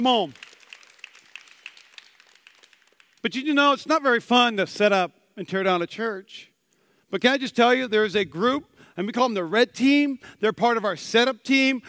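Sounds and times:
speech: 0.0 - 0.4, 3.2 - 6.5, 7.1 - 11.8
crowd applause: 0.0 - 3.2.

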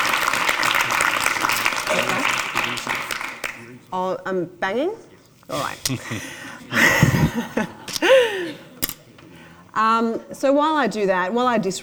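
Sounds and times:
audience applause: 0.0 - 3.8
speech: 3.9 - 7.8, 9.8 - 11.8
laughter: 5.5 - 10.3.

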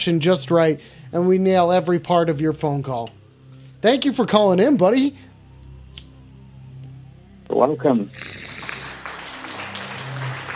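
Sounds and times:
speech: 0.0 - 3.2, 3.8 - 5.3, 7.6 - 8.4
light applause: 8.5 - 10.5.

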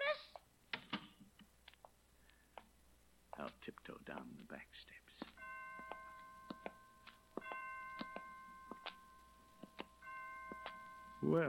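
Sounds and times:
low hum: 0.0 - 11.4
speech: 3.4 - 5.3, 11.2 - 11.4
hospital clock chimes striking five o'clock: 5.4 - 11.4.

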